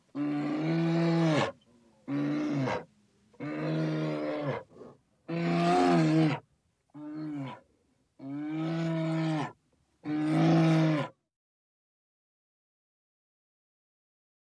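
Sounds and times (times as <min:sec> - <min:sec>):
forest bear: 0:00.1 - 0:06.4, 0:07.0 - 0:11.2.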